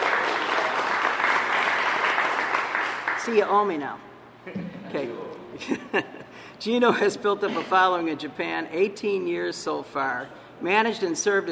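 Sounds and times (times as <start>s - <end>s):
crowd clapping: 0.0s - 3.7s
speech: 3.2s - 11.5s.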